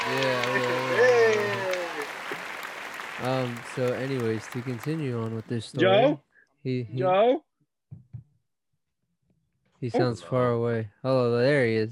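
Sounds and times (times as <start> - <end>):
applause sound effect: 0.0 - 5.8
speech: 0.1 - 0.6, 3.2 - 7.5, 9.8 - 11.9.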